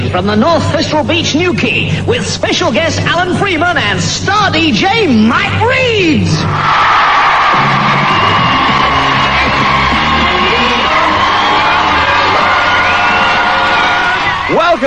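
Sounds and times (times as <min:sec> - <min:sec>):
speech: 0:00.1 - 0:07.2
beach crowd cheering and whooping: 0:06.5 - 0:14.8.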